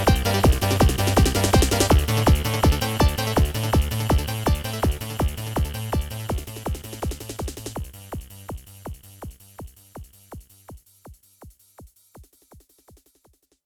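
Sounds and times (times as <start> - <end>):
Yamaha QS300 synthesizer music: 0.0 - 7.8.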